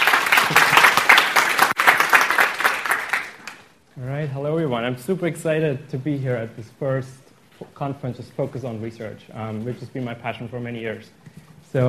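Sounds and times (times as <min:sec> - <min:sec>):
audience applause welcoming a speaker at a research conference: 0:00.0 - 0:03.7
speech: 0:04.0 - 0:11.8.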